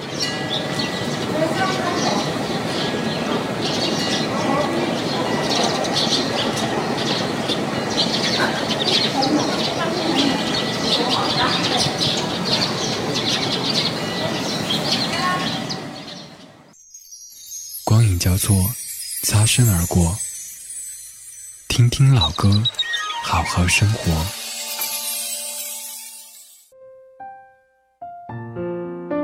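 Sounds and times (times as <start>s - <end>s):
birds: 0.0s - 20.2s, 21.7s - 24.4s
bells: 0.0s - 26.7s
morning breeze by the Grand Canal: 16.7s - 26.7s
speech: 19.6s - 20.2s, 21.8s - 24.4s.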